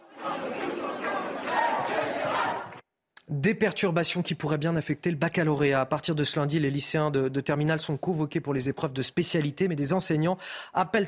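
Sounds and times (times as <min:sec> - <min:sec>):
large crowd of protesters shouting and chanting: 0:00.0 - 0:02.8
speech: 0:03.4 - 0:11.0.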